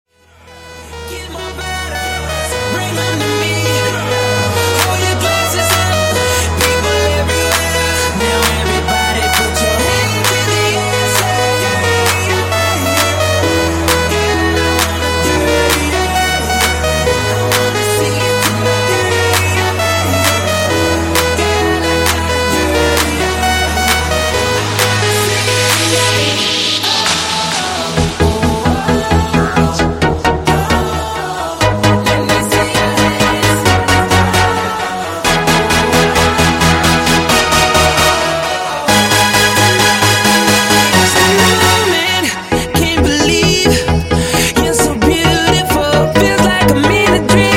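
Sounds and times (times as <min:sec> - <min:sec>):
music mashup at 132 BPM: 0:00.2 - 0:47.5.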